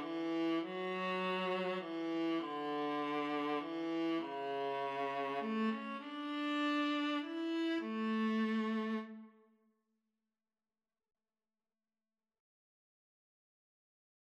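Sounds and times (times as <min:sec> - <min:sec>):
violin and viola duet: 0:00.0 - 0:09.4.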